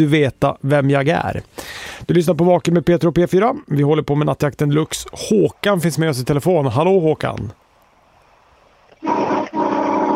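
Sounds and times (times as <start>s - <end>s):
speech: 0.0s - 7.6s
truck horn blasts: 9.0s - 10.1s.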